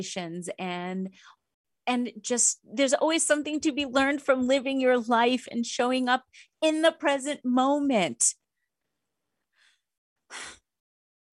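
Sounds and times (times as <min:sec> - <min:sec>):
speech: 0:00.0 - 0:08.4, 0:10.3 - 0:10.6
person breathing: 0:09.5 - 0:10.6.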